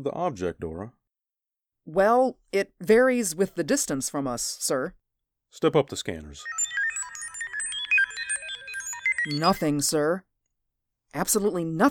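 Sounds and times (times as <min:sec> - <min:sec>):
speech: 0:00.0 - 0:01.0, 0:01.8 - 0:06.8, 0:09.2 - 0:10.3, 0:11.1 - 0:11.8
alarm ringing: 0:06.4 - 0:09.9.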